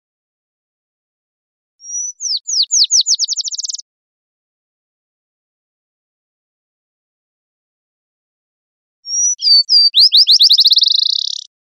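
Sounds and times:
black-chinned sparrow singing whistles and trill: 1.8 - 3.8, 9.1 - 11.5.

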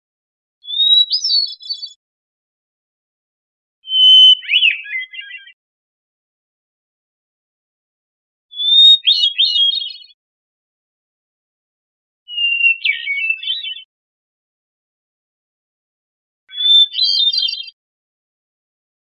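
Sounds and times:
hermit thrush singing: 0.6 - 2.0, 3.8 - 5.6, 8.5 - 10.2, 12.3 - 13.9, 16.5 - 17.8.

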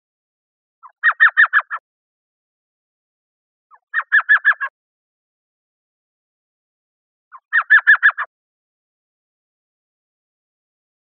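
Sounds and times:
elf owl chattering yelps: 0.8 - 1.8, 3.7 - 4.7, 7.3 - 8.3.

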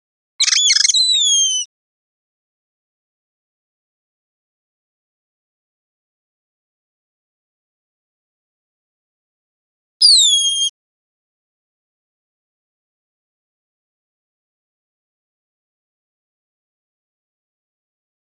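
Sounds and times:
bird chattering and whistling: 0.4 - 1.7, 10.0 - 10.7.

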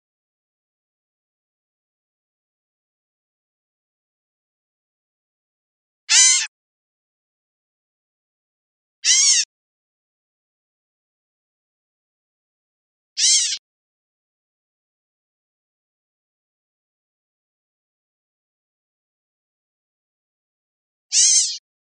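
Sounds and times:
bird giving a nasal mewing call in Costa Rica: 9.0 - 9.4, 13.2 - 13.6, 21.1 - 21.6.

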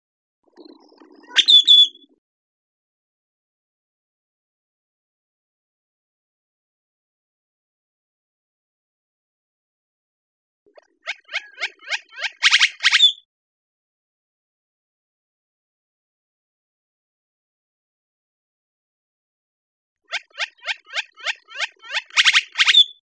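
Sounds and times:
great-tailed grackle whistle: 1.2 - 2.1, 12.6 - 13.2, 20.4 - 23.0.

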